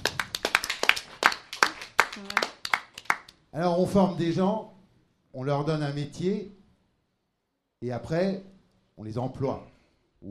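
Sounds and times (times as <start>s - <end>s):
audience applauding: 0.0s - 3.3s
speech: 3.6s - 4.7s, 5.3s - 6.6s, 7.8s - 10.2s.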